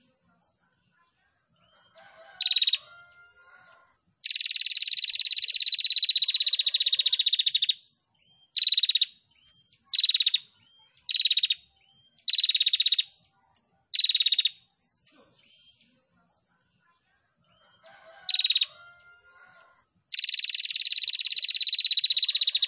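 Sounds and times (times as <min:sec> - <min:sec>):
female prinia singing rattling trills: 0:04.2 - 0:07.8, 0:08.6 - 0:09.2, 0:09.9 - 0:11.6, 0:12.2 - 0:13.1, 0:13.9 - 0:14.6, 0:17.9 - 0:19.1, 0:20.1 - 0:22.6.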